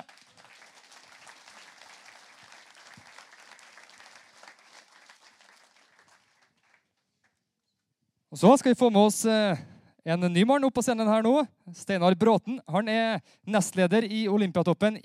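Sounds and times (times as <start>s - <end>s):
audience applauding: 0.0s - 7.4s
speech: 8.4s - 15.0s.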